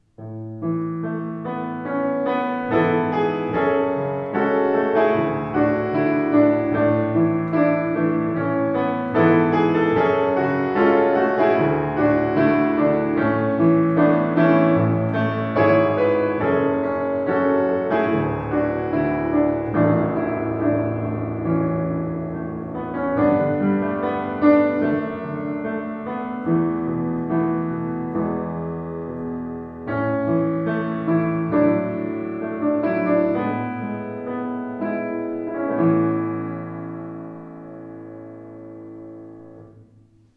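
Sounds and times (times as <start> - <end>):
piano piece: 0.0 - 40.3.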